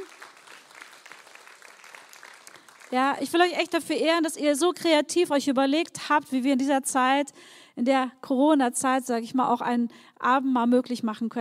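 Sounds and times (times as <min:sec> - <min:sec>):
audience clapping: 0:00.0 - 0:03.3
speech: 0:02.9 - 0:11.4.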